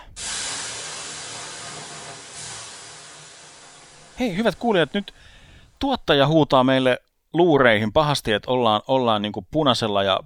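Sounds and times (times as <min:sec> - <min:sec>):
water thrown on hot sauna stones hissing: 0:00.0 - 0:05.7
speech: 0:04.2 - 0:10.2.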